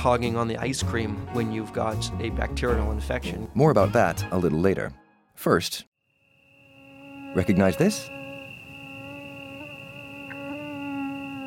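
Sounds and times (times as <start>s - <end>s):
speech: 0.0s - 5.9s, 7.3s - 8.2s
mosquito buzzing as it draws near: 6.0s - 11.4s.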